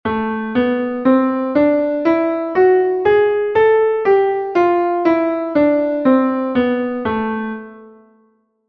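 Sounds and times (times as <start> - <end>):
A melodic minor scale ascending and descending: 0.1 - 7.8.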